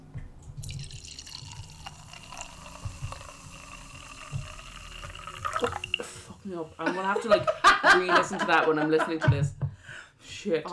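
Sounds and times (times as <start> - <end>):
sparkling drink pouring into a glass: 0.6 - 6.4
speech: 6.5 - 9.6, 10.4 - 10.7
laughter: 6.8 - 9.6.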